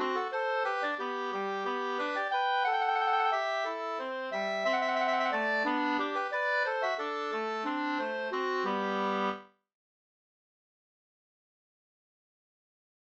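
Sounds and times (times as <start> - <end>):
waltz music: 0.0 - 9.5.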